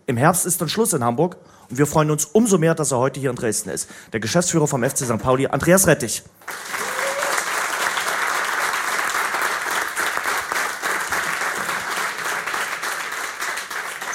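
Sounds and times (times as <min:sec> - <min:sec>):
speech: 0:00.1 - 0:06.8
audience applause: 0:06.4 - 0:14.1.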